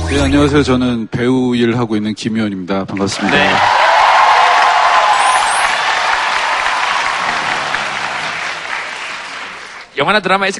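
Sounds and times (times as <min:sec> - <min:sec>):
speech: 0:00.1 - 0:03.8, 0:10.0 - 0:10.5
large audience applause: 0:02.9 - 0:09.9.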